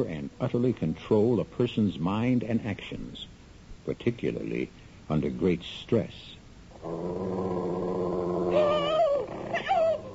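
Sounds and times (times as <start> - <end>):
speech: 0.0 - 3.3, 3.9 - 8.0
wolf growling and attacking: 6.7 - 10.1.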